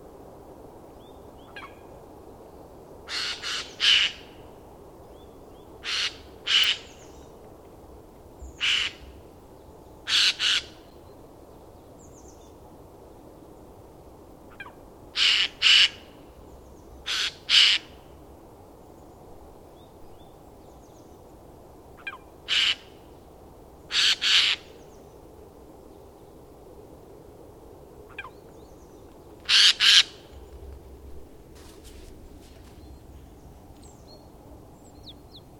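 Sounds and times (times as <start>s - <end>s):
quiet hiss: 0.0s - 35.5s
bird giving harsh raspy squawks: 5.8s - 6.9s, 10.1s - 10.7s, 17.1s - 17.9s, 22.0s - 22.9s, 23.9s - 24.7s, 29.5s - 30.2s.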